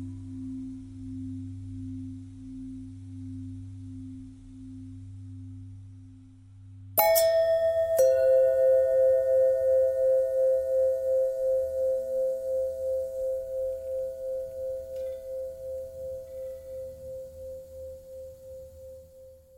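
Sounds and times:
long pentatonic bell tones: 0:07.0 - 0:19.4.

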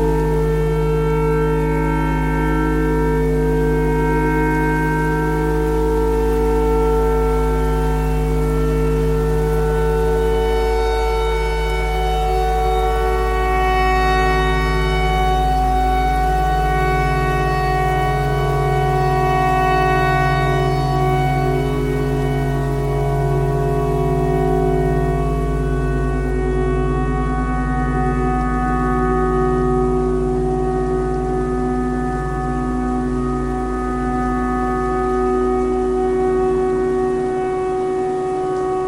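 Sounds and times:
clarinet playing pentatonic: 0:00.0 - 0:38.8
tornado siren: 0:00.0 - 0:38.8.

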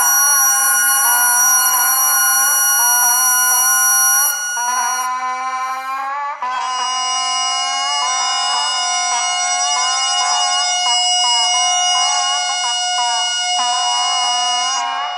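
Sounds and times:
radio noise: 0:00.0 - 0:05.9
bagpipe: 0:00.0 - 0:15.0.

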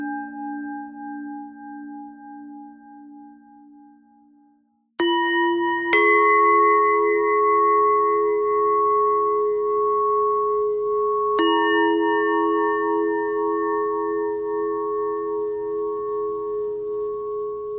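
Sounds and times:
bending bell tone: 0:05.0 - 0:17.7.

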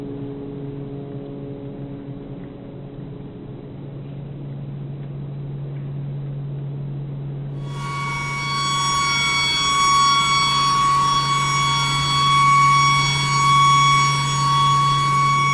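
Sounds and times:
tornado siren: 0:07.6 - 0:15.5.

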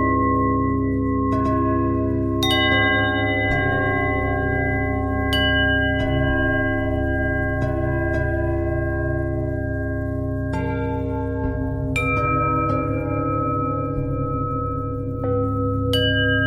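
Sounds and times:
bell harmonic twist: 0:00.0 - 0:16.4.

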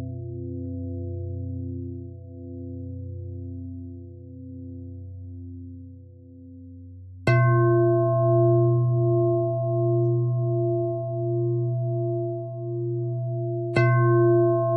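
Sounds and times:
pentatonic bell melody: 0:07.3 - 0:14.7.

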